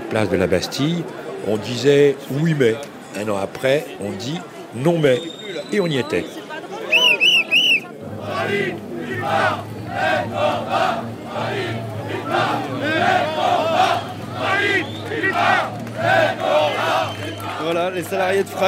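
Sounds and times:
speech: 0:00.1 - 0:06.4, 0:08.4 - 0:17.0, 0:17.6 - 0:18.6
large outdoor protest crowd cheering and shouting: 0:06.8 - 0:18.6
clapping for arriving workers: 0:14.0 - 0:18.6.

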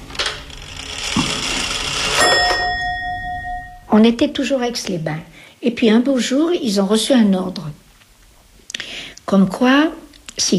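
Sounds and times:
old Swiss pendulum clock mechanism chiming: 0:01.9 - 0:04.0
speech: 0:04.0 - 0:07.8, 0:09.3 - 0:10.5.

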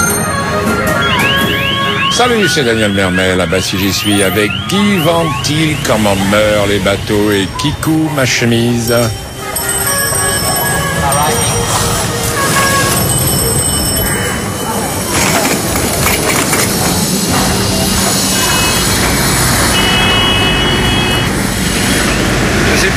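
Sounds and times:
bell-like tones: 0:00.0 - 0:02.1, 0:07.2 - 0:16.0
traffic crossing a large city square: 0:00.0 - 0:22.9
speech: 0:02.2 - 0:09.2
faint murmuring voices: 0:02.2 - 0:19.1.

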